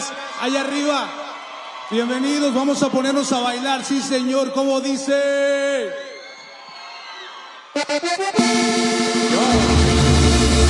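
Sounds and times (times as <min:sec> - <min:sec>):
live concert crowd in Mexico City cheering: 0:00.0 - 0:10.6
speech: 0:00.4 - 0:01.2, 0:01.9 - 0:06.1, 0:07.9 - 0:09.1
loud cumbia music with steady bass: 0:07.8 - 0:10.6.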